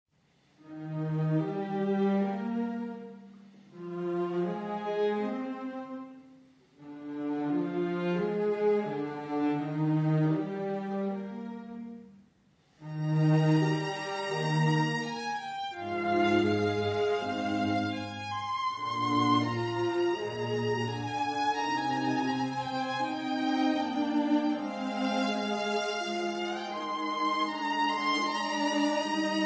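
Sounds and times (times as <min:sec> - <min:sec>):
viola quintet playing adagio in B flat: 0:00.6 - 0:29.4.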